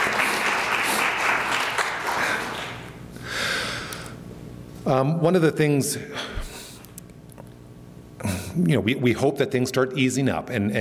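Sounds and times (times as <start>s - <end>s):
applause: 0.0s - 3.0s
speech: 4.9s - 6.3s, 8.6s - 10.7s.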